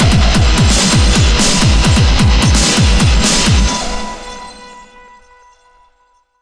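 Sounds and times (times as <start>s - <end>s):
action boss battle music: 0.0s - 4.6s.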